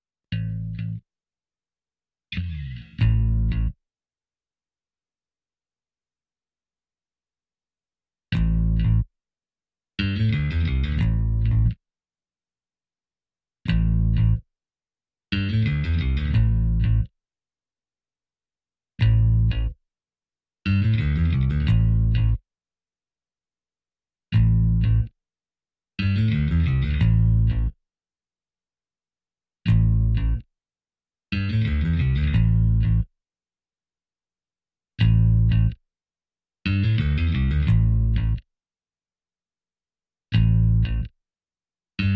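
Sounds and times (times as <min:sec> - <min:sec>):
bass: 0:00.3 - 0:01.1, 0:02.3 - 0:03.9, 0:08.3 - 0:09.2, 0:10.0 - 0:11.8, 0:13.6 - 0:14.6, 0:15.3 - 0:17.2, 0:19.0 - 0:19.8, 0:20.7 - 0:22.4, 0:24.3 - 0:25.2, 0:26.0 - 0:27.8, 0:29.6 - 0:30.5, 0:31.3 - 0:33.2, 0:35.0 - 0:35.8, 0:36.7 - 0:38.5, 0:40.3 - 0:41.2.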